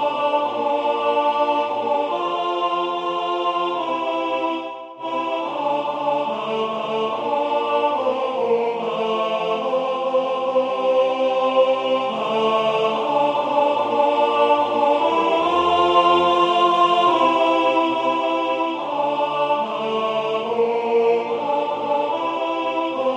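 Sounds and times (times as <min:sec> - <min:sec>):
alto voice singing: 0:00.0 - 0:23.1.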